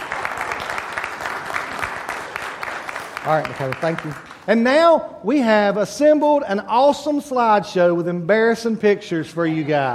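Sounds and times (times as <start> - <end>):
audience applause: 0.0 - 4.5
speech: 3.2 - 9.9.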